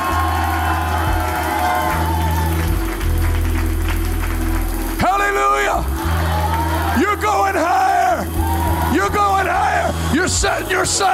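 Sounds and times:
audience hand clapping: 0.0 - 9.9
speech: 10.8 - 11.1.

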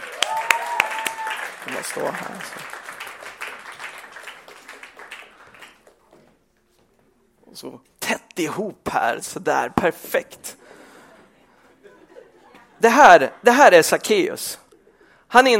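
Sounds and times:
audience applause: 0.0 - 6.0
speech: 1.7 - 2.8, 7.6 - 10.6, 12.8 - 14.6, 15.3 - 15.5
laughter: 10.7 - 13.6.

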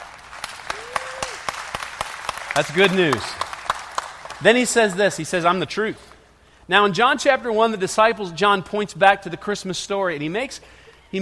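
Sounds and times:
audience clapping: 0.0 - 5.0
speech: 2.6 - 3.4, 4.4 - 6.1, 6.7 - 11.2.

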